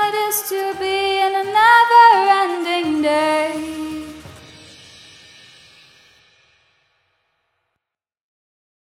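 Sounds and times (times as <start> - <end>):
Christmas song: 0.0 - 5.6.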